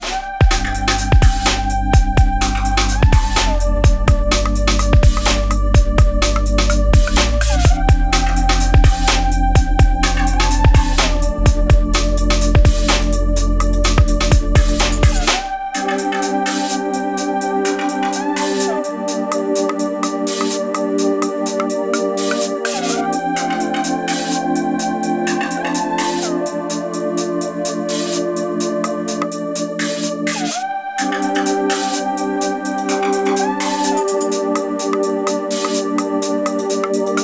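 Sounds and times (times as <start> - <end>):
instrumental drums: 0.0 - 37.2.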